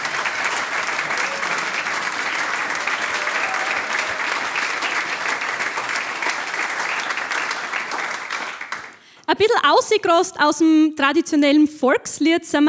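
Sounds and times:
audience applause: 0.0 - 9.1
speech: 9.4 - 12.6.

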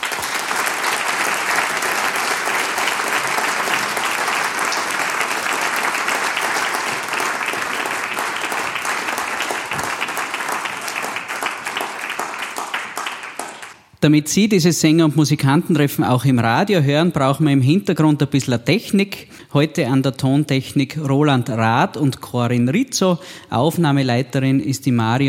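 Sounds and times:
applause: 0.0 - 13.9
speech: 14.0 - 25.2.

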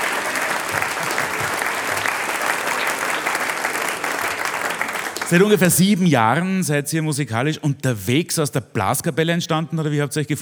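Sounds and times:
audience applause: 0.0 - 5.6
speech: 5.3 - 10.4.

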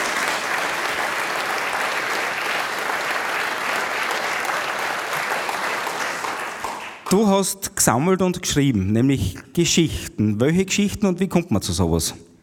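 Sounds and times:
audience clapping: 0.0 - 7.3
speech: 7.1 - 12.3.

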